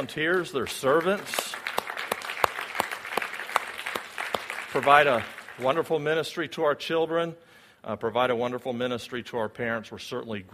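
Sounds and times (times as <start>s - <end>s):
speech: 0.0s - 1.8s, 4.7s - 10.5s
soft sparse clapping for church children's ministry servants: 0.3s - 5.8s.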